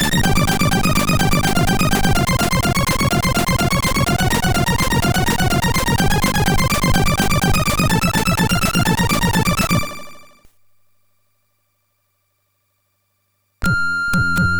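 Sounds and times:
MOS6581R4 SID chip music: 0.0s - 10.4s.

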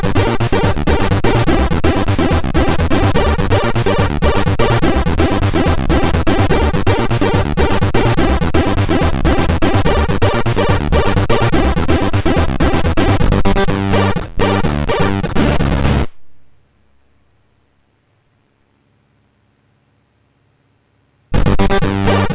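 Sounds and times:
march on MOS6581R4 SID chip: 0.0s - 16.1s, 21.4s - 22.3s.

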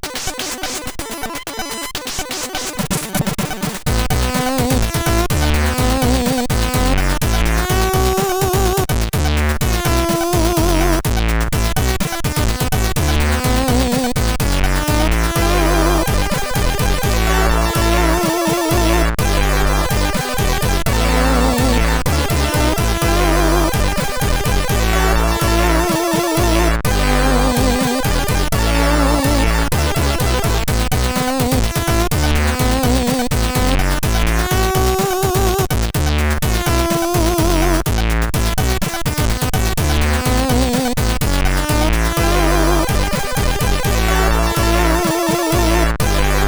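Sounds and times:
jazz music on a SID CSG8580R5 chip: 0.0s - 46.4s.

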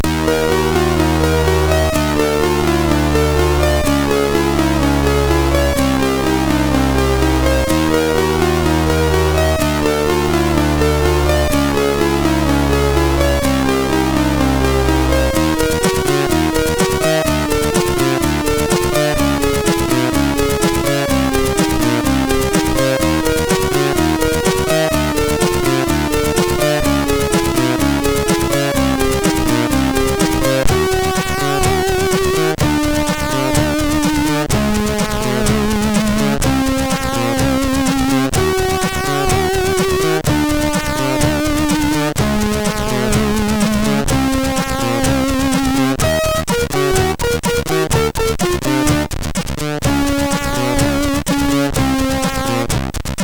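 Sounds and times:
MOS6581 chiptune instruments: 0.0s - 53.2s.

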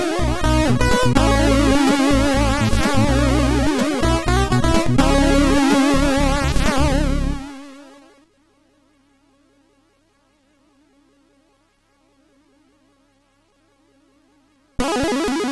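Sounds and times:
MOS6581R4 SID chip music: 0.0s - 7.9s, 14.8s - 15.5s.

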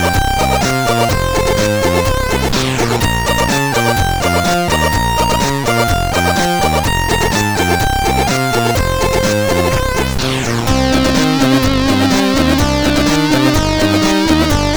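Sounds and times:
tracker music on a CSG8580R5 sound chip: 0.0s - 14.7s.

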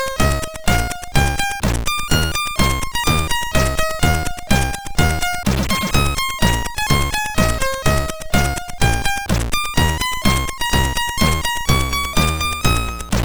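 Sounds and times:
chiptune music on a MOS6581R3 SID chip: 0.0s - 13.2s.

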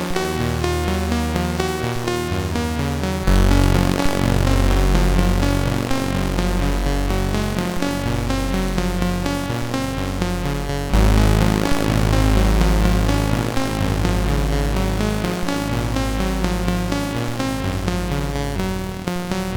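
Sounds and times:
looping synth note on a CSG8580R5 SID chip: 0.0s - 19.5s.

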